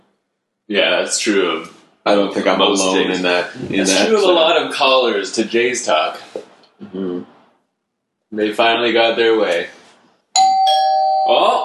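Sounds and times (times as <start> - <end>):
speech: 0.7 - 7.3, 8.3 - 9.8, 11.3 - 11.6
doorbell ding-dong: 10.4 - 11.6.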